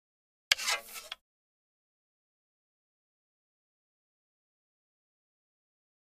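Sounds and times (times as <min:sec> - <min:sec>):
wood arrow sliding against bow while being drawn back to fire: 0:00.5 - 0:01.2.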